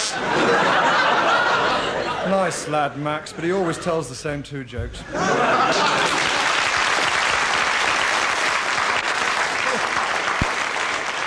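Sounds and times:
laughter: 0.0 - 4.0, 5.0 - 7.1, 9.5 - 10.3
speech: 2.3 - 6.2
studio audience applause: 5.8 - 11.2.

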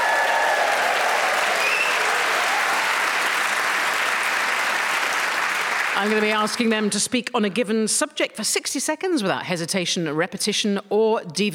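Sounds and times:
studio audience whooping and cheering: 0.0 - 6.0
speech: 6.0 - 11.5.

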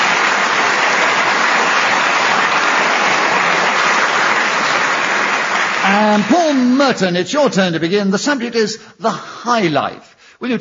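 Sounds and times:
studio audience applause: 0.0 - 7.6
speech: 6.0 - 10.5.

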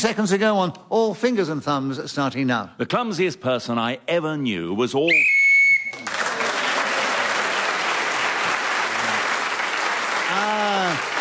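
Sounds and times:
speech: 0.0 - 5.4
game show whistle blast: 5.1 - 6.0
audience applause: 5.9 - 11.1
voiced exclamation: 10.3 - 11.1.

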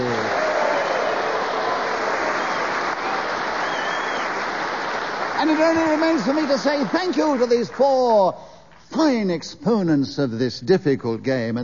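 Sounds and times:
studio audience applause: 0.0 - 8.4
speech: 5.4 - 11.6.

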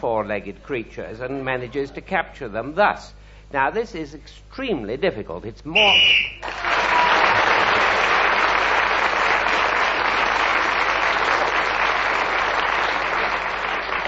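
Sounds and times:
speech: 0.0 - 6.8
audience applause: 6.4 - 14.0.

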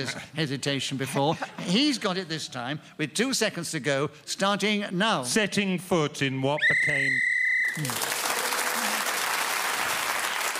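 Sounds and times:
speech: 0.0 - 8.2
whistle blown to end the round: 6.6 - 7.8
applause: 7.6 - 10.5.

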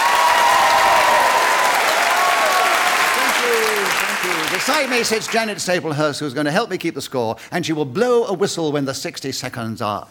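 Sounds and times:
audience cheering and whoops: 0.0 - 4.7
audience applause: 0.0 - 5.7
speech: 4.5 - 10.0.

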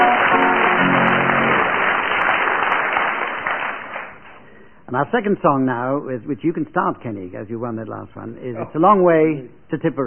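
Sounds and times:
audience applause: 0.0 - 4.4
speech: 4.9 - 10.0.

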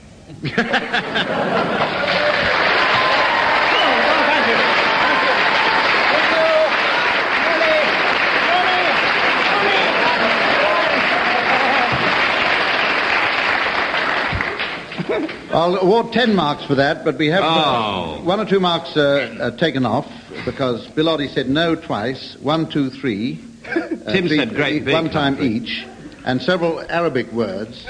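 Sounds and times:
speech: 0.3 - 2.0, 15.6 - 27.8
laughter: 0.3 - 6.6, 9.4 - 12.4, 14.9 - 15.5, 23.6 - 26.1
audience applause: 0.8 - 15.5.

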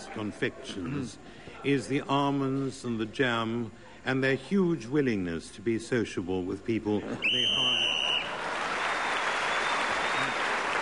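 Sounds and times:
speech: 0.2 - 8.1
game show whistle blowing: 7.2 - 10.5
audience applause: 7.6 - 10.8.

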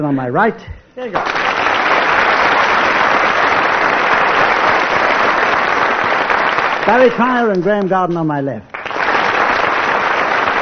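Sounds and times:
speech: 0.0 - 1.7, 6.9 - 8.7
studio audience applause: 1.2 - 7.8, 8.7 - 10.5.

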